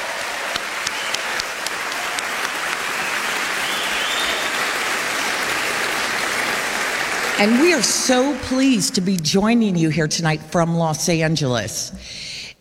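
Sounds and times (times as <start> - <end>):
audience applause: 0.0 - 9.0
speech: 7.4 - 12.3.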